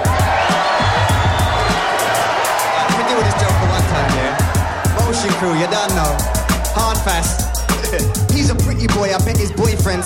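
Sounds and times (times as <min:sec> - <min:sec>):
home crowd cheering and whooping: 0:00.0 - 0:10.0
speech: 0:07.0 - 0:10.0.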